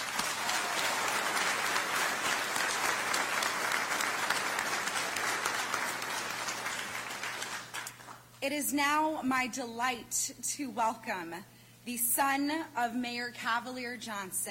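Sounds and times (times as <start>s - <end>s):
audience applause after a national anthem performance: 0.0s - 8.2s
speech: 8.4s - 14.4s.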